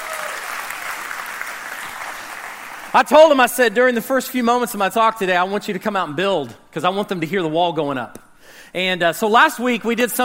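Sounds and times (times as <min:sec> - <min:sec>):
audience round of applause: 0:00.0 - 0:02.9
speech: 0:02.9 - 0:10.2.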